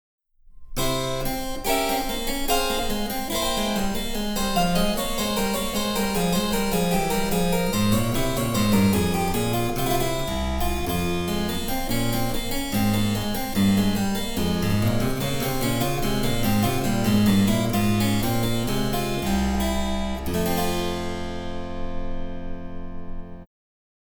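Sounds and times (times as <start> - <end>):
harpsichord: 0.6 - 23.4.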